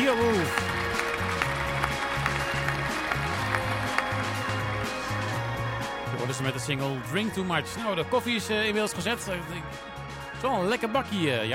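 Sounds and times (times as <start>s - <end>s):
crowd applause sound effect: 0.0s - 5.4s
speech: 6.4s - 11.5s.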